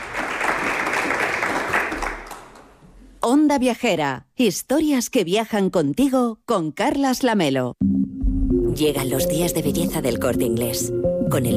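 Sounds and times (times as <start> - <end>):
audience applause: 0.0 - 2.8
speech: 3.2 - 7.9, 8.8 - 11.5.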